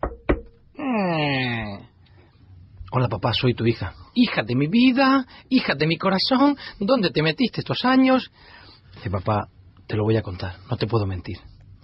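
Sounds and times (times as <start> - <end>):
knocking on a door in a small village in Chiapas: 0.0 - 0.6
speech: 2.9 - 11.5.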